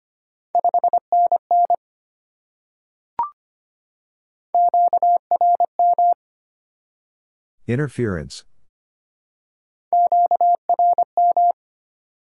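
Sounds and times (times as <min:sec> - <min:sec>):
Morse code at 25 wpm sending a 5NN signal report: 0:00.6 - 0:01.8, 0:04.6 - 0:06.2, 0:10.0 - 0:11.6
speech: 0:07.7 - 0:08.5.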